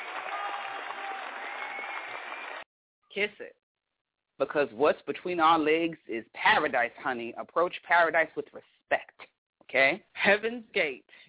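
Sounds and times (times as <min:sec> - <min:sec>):
applause: 0:00.0 - 0:02.7
speech: 0:03.2 - 0:03.6, 0:04.4 - 0:09.1, 0:09.7 - 0:11.2.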